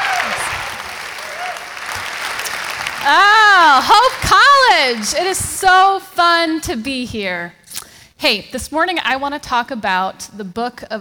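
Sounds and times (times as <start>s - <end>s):
audience applause at Hope College: 0.0s - 5.4s
speech: 3.0s - 7.6s, 8.2s - 10.9s.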